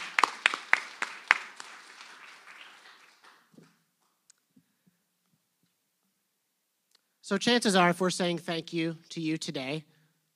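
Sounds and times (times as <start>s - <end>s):
audience applause: 0.0s - 3.8s
speech: 7.3s - 9.9s.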